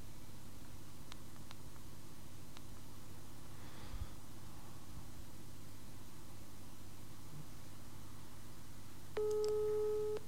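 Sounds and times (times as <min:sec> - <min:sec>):
quiet hiss: 0:00.0 - 0:10.2
telephone call electronic ring tone: 0:09.2 - 0:10.2.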